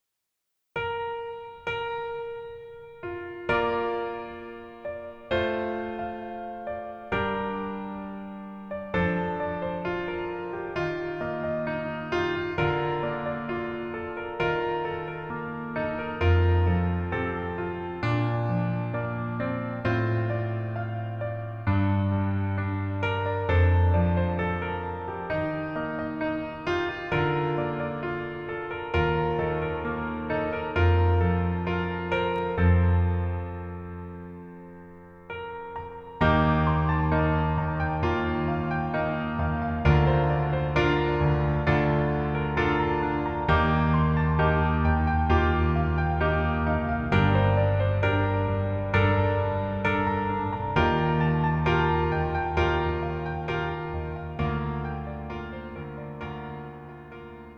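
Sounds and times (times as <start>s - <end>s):
piano melody in female key: 0.8s - 57.5s.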